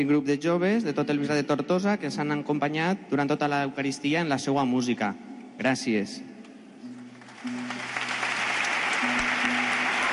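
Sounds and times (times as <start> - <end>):
speech: 0.0 - 6.3
applause: 7.0 - 10.1.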